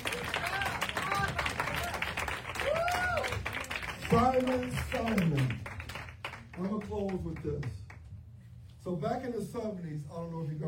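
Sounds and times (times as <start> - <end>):
audience clapping: 0.0 - 8.1
speech: 4.1 - 5.7, 6.6 - 7.8, 8.8 - 10.6.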